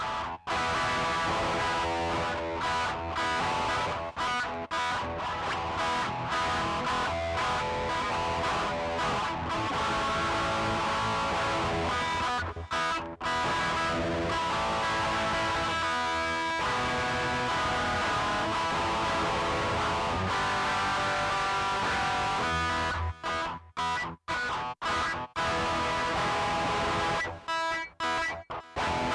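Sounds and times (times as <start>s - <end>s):
guitar: 0.0s - 29.1s.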